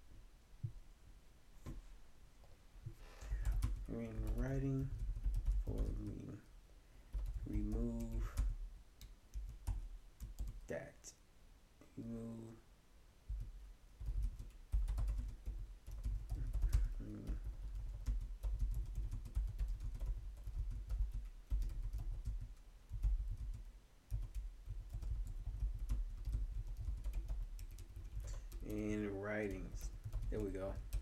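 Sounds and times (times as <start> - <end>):
typing on a computer keyboard writing an email: 3.3 - 6.4, 7.1 - 10.7, 13.3 - 31.0
speech: 3.9 - 5.0, 5.7 - 6.5, 7.5 - 8.4, 10.7 - 11.2, 12.0 - 12.6.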